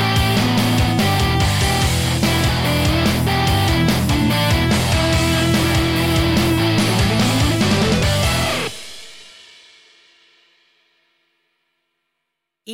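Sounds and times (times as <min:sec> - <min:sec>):
bouncy rock music: 0:00.0 - 0:09.2.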